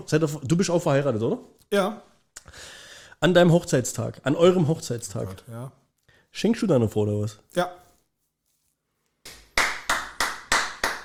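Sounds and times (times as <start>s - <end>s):
speech: 0.0s - 7.8s
hand clapping: 9.2s - 11.0s.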